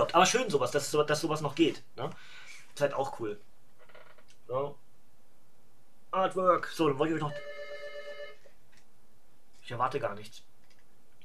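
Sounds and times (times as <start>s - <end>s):
speech: 0.2s - 3.5s, 4.5s - 4.8s, 6.1s - 7.6s, 9.7s - 10.5s
doorbell ringing: 7.3s - 8.4s.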